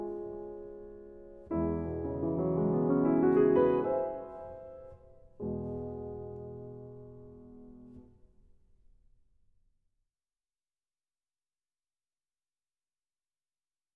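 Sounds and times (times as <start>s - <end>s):
waltz music: 0.0s - 6.8s.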